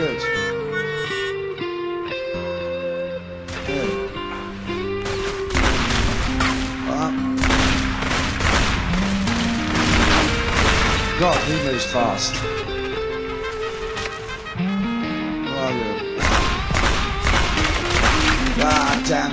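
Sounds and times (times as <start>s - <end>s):
tonal video game music: 0.0s - 19.3s
big gun firing in a video game: 5.0s - 12.5s, 16.2s - 19.2s
speech: 11.2s - 12.7s.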